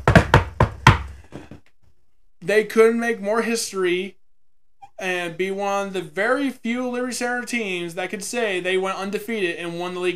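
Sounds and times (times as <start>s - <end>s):
sharp hollow knocks on wood: 0.0s - 1.5s
speech: 2.5s - 4.2s, 5.0s - 10.1s.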